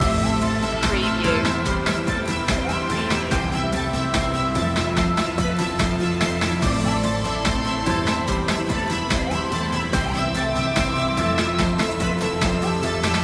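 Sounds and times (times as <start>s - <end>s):
reaching a goal music loop: 0.0s - 13.2s.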